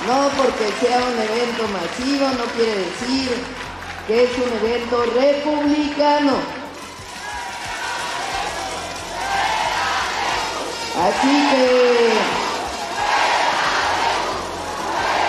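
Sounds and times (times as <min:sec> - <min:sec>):
speech: 0:00.1 - 0:06.6, 0:11.0 - 0:12.4
crowd shouting: 0:06.8 - 0:15.2.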